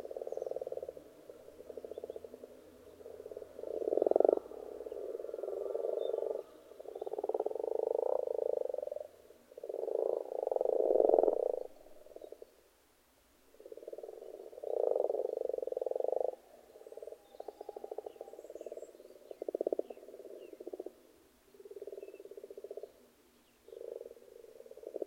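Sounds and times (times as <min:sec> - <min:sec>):
frogs croaking in a pond: 0:00.0 - 0:12.6, 0:13.5 - 0:25.0.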